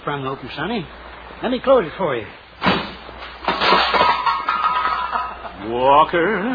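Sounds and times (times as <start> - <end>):
speech: 0.0 - 2.4, 5.6 - 6.5
loose car headlight falling off and breaking: 2.6 - 5.4
glass and metal clattering: 2.6 - 5.6
glass pieces tinkling as they settle: 3.7 - 5.4.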